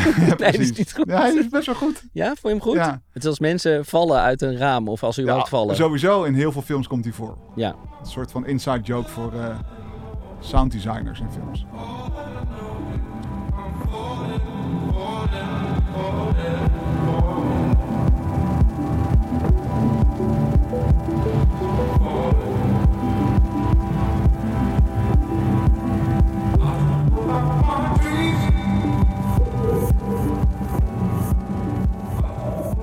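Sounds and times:
laughter: 0:00.0 - 0:02.8
speech: 0:00.0 - 0:09.8, 0:10.4 - 0:12.6
layered ambient music with deep throbbing pulse and droning tones: 0:06.7 - 0:32.8.

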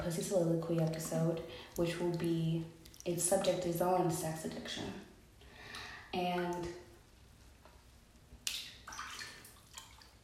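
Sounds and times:
speech: 0:00.0 - 0:05.1, 0:06.1 - 0:06.8
water running and splashing as a face mask is rinsed: 0:08.5 - 0:10.2.

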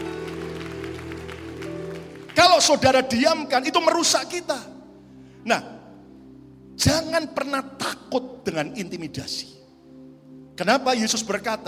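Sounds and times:
audience applauding: 0:00.0 - 0:02.9
speech: 0:02.6 - 0:04.7, 0:05.4 - 0:05.8, 0:06.8 - 0:09.6, 0:10.6 - 0:11.6.

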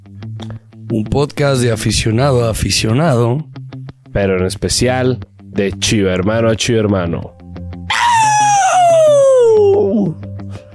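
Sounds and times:
speech: 0:00.9 - 0:03.5, 0:04.2 - 0:07.4
loud scream: 0:07.9 - 0:10.1.

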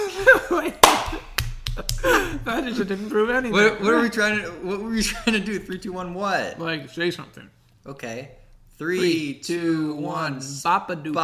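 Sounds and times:
laughter: 0:00.0 - 0:04.2
speech: 0:00.3 - 0:11.2
hands clapping: 0:00.8 - 0:02.3.

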